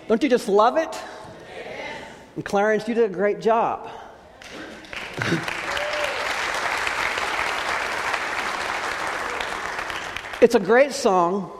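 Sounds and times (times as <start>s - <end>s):
speech: 0.1s - 1.2s, 2.4s - 4.0s, 5.2s - 5.6s, 10.4s - 11.5s
audience clapping: 4.4s - 10.7s.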